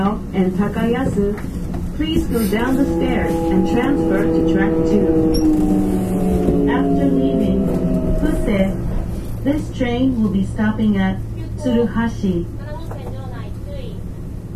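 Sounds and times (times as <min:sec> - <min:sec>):
low steady hum: 0:00.0 - 0:13.4
express train rumble on the Nara Line: 0:00.0 - 0:14.5
whining tones gliding downward: 0:01.8 - 0:10.8.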